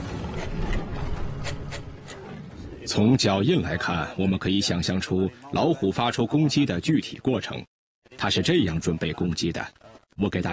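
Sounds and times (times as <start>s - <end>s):
something scratching at a wooden wall: 0.0s - 2.3s
speech: 2.9s - 10.5s.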